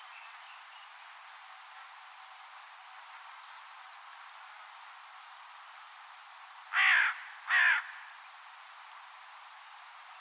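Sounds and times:
bird cawing: 0:06.7 - 0:08.2.

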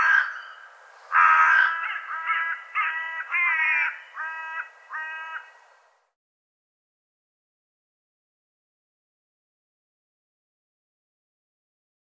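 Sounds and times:
bird uttering harsh nasal caws: 0:00.0 - 0:05.7.

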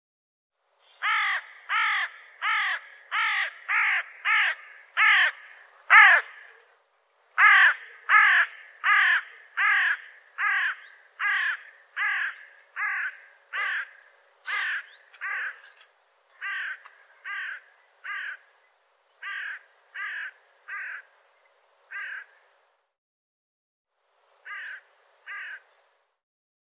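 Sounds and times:
bird cawing: 0:00.9 - 0:06.7, 0:07.4 - 0:18.6, 0:19.2 - 0:21.1, 0:21.9 - 0:22.5, 0:24.4 - 0:25.7.

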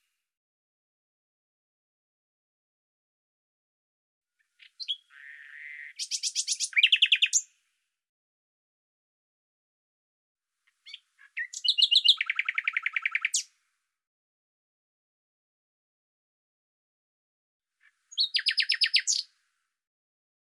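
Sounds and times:
bird song: 0:04.3 - 0:07.7, 0:10.6 - 0:13.6, 0:17.8 - 0:19.5.

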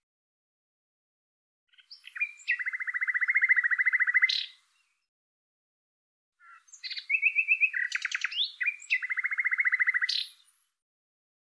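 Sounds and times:
bird singing chattering trills and short whistled notes: 0:01.7 - 0:05.0, 0:06.4 - 0:10.8.

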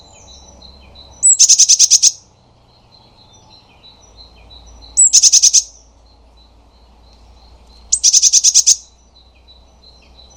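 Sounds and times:
Eurasian blue tit giving churring scolds: 0:01.2 - 0:02.2, 0:04.9 - 0:05.7, 0:07.9 - 0:08.9.

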